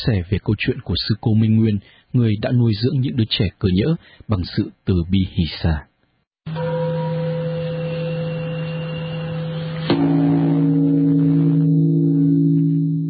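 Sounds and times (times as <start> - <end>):
speech: 0.0 - 6.8
Buddhist temple bell ringing at Bổ Châu Tôn Nghiêm pagoda: 6.5 - 13.0.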